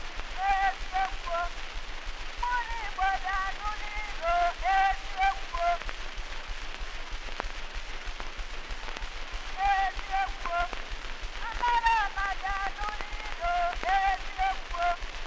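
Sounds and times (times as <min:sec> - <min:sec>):
Igbo song on a wax cylinder recording: 0:00.3 - 0:01.6, 0:02.5 - 0:05.8, 0:09.5 - 0:15.1.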